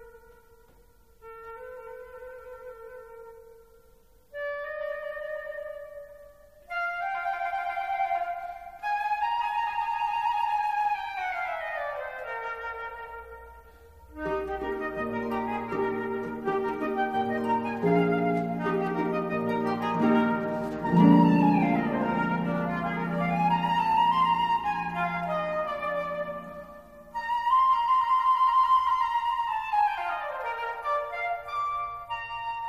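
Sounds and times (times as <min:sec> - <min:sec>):
flute: 0:00.0 - 0:32.6
harp: 0:00.0 - 0:32.6.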